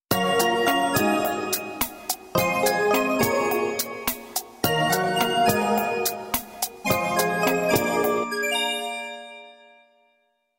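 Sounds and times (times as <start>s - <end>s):
melody: 0.1s - 10.2s.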